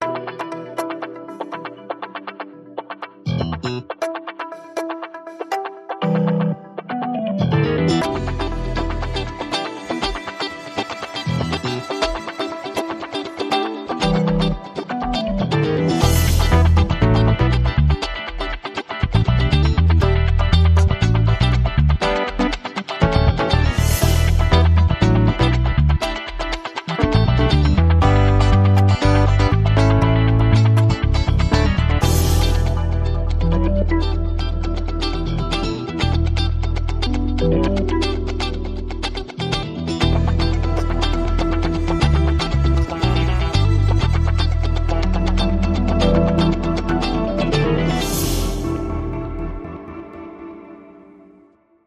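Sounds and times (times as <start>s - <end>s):
funk music without percussion: 0.0s - 51.0s.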